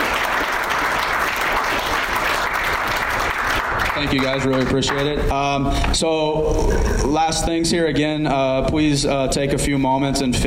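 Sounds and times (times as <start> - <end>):
audience applauding: 0.0 - 5.2
speech: 4.0 - 10.4.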